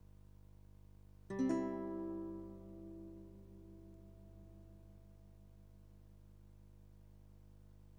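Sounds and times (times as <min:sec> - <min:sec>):
guitar: 0:01.3 - 0:05.5.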